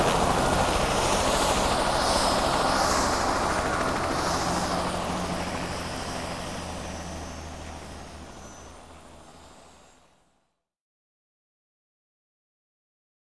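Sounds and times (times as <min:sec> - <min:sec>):
helicopter starting up: 0:00.0 - 0:10.1.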